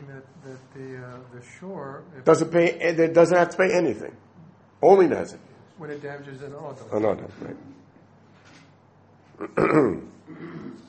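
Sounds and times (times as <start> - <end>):
speech: 0.2 - 4.2, 4.8 - 7.8, 9.4 - 10.8
gruff throat clearing: 9.4 - 10.8.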